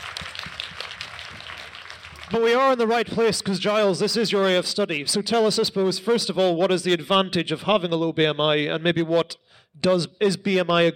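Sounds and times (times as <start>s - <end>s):
audience applause: 0.0s - 2.7s
speech: 2.3s - 10.9s.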